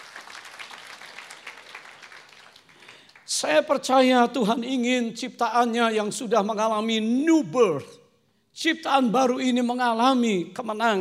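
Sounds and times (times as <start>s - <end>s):
audience applause: 0.0s - 3.3s
speech: 3.3s - 8.0s, 8.6s - 10.9s.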